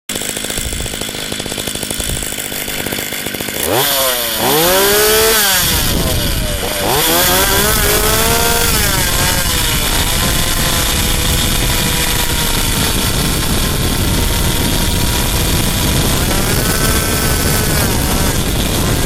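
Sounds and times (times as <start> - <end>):
STIHL 230c chainsaws: 0.1 - 19.0.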